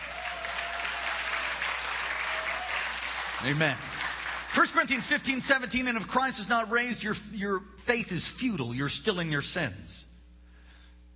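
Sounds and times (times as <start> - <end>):
audience hand clapping: 0.0 - 5.7
speech: 3.4 - 10.1.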